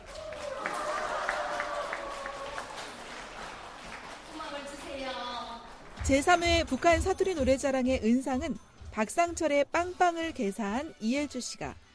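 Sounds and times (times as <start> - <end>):
audience applause: 0.0 - 4.7
speech: 6.1 - 11.8.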